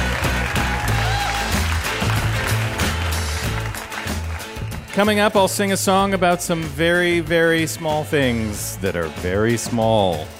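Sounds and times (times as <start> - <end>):
audience applause: 0.0 - 5.0
speech: 5.0 - 10.3.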